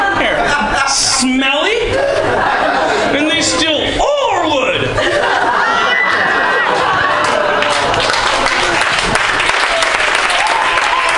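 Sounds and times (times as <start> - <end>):
laughter: 0.0 - 10.4
speech: 1.2 - 2.6
applause sound effect: 7.2 - 11.1.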